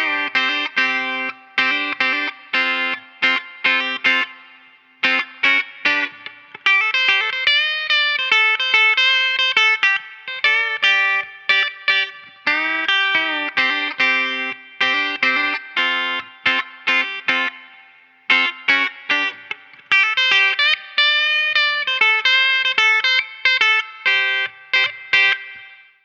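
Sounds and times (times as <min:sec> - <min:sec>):
electric guitar: 0:00.0 - 0:26.0.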